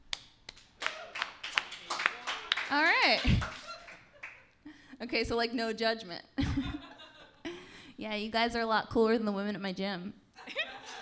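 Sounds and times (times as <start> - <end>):
small audience clapping: 0.0 - 4.6
laughter: 1.8 - 4.8, 6.4 - 7.6, 10.4 - 11.0
speech: 2.7 - 3.6, 5.0 - 6.7, 8.0 - 10.2.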